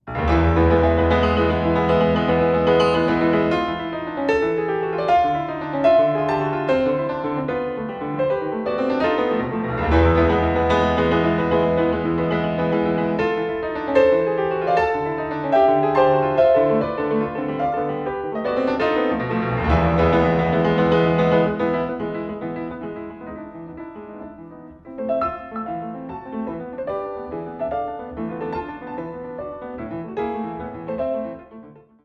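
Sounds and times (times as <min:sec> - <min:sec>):
piano sonata: 0:00.0 - 0:32.0.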